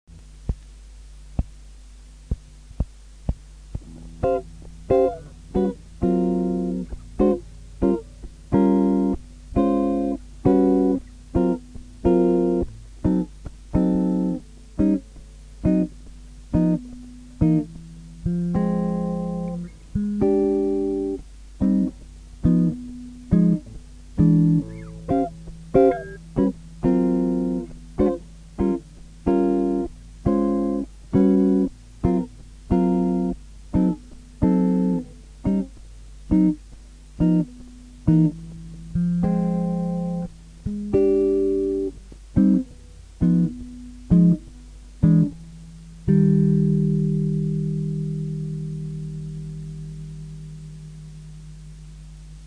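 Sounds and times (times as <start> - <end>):
blues guitar accompaniment: 3.3 - 51.5.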